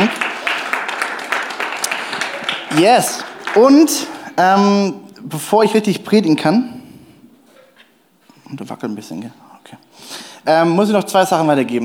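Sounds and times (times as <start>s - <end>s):
audience applause: 0.0s - 4.2s
speech: 2.8s - 6.8s, 8.5s - 11.8s.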